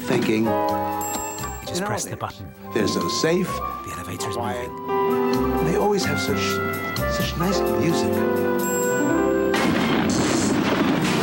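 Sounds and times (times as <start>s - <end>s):
speech: 0.2s - 1.0s, 1.7s - 8.8s
lightning strike boom sound effect: 9.5s - 11.2s.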